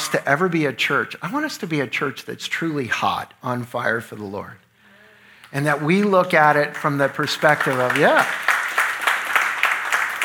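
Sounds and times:
speech: 0:00.1 - 0:04.6, 0:05.5 - 0:08.5
audience clapping: 0:05.6 - 0:10.2.

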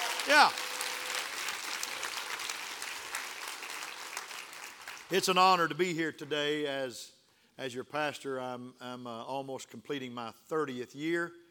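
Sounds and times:
audience clapping: 0:00.0 - 0:05.5
speech: 0:00.2 - 0:00.6, 0:05.1 - 0:11.4.

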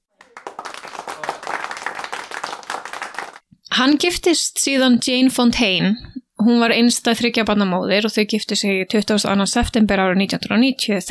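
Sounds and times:
people clapping: 0:00.0 - 0:03.4
speech: 0:03.8 - 0:11.0.

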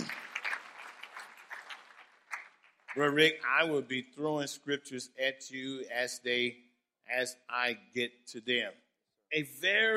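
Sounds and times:
audience clapping hands: 0:00.0 - 0:03.5
speech: 0:03.0 - 0:09.9.

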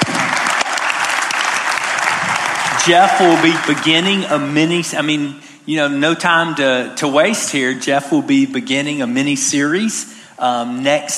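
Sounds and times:
crowd applauding: 0:00.0 - 0:04.8
speech: 0:02.8 - 0:11.1.

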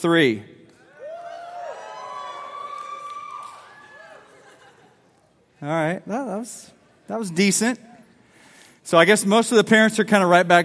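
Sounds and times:
speech: 0:00.0 - 0:00.5, 0:05.6 - 0:07.9, 0:08.8 - 0:10.6
audience screaming and cheering: 0:00.8 - 0:04.9
laughter: 0:04.0 - 0:05.4.

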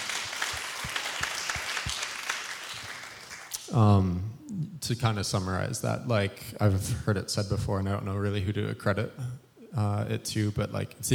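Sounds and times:
crowd applauding: 0:00.0 - 0:03.6
speech: 0:03.7 - 0:11.1.

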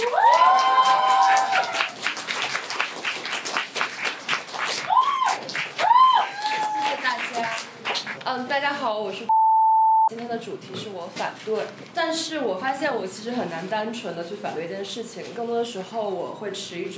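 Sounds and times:
audience cheering: 0:00.0 - 0:02.0, 0:04.9 - 0:07.2
audience applause: 0:00.0 - 0:08.0
speech: 0:08.4 - 0:09.3, 0:10.1 - 0:16.9.

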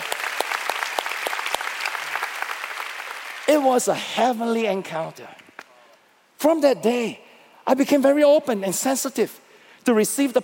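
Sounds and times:
audience clapping: 0:00.0 - 0:04.0
speech: 0:03.5 - 0:05.4, 0:06.4 - 0:10.4.

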